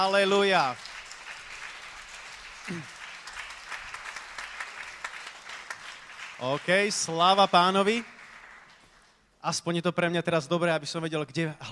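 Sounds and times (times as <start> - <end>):
speech: 0.0 - 0.9, 2.7 - 3.0, 6.4 - 8.1, 9.4 - 11.6
audience applause: 0.0 - 9.1.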